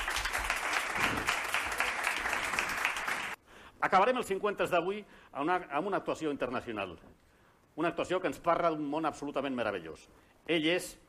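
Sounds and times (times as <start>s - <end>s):
audience applause: 0.0s - 3.4s
speech: 3.8s - 7.2s, 7.8s - 11.0s.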